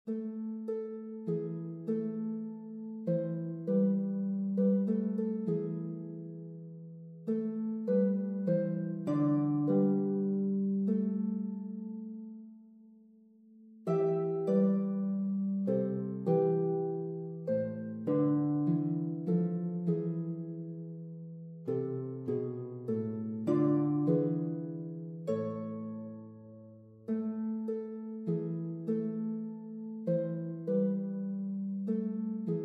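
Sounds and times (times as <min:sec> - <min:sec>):
harp: 0:00.0 - 0:32.6.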